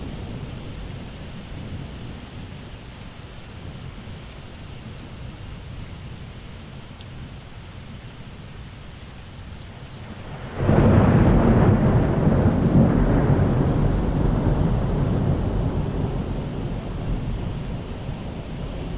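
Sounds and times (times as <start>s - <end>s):
thunder in a summer storm: 10.1s - 17.9s.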